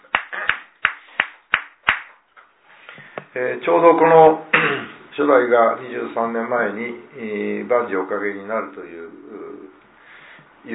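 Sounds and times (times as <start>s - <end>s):
hand claps for a birthday at a morning service: 0.0s - 2.2s
speech: 3.4s - 9.2s.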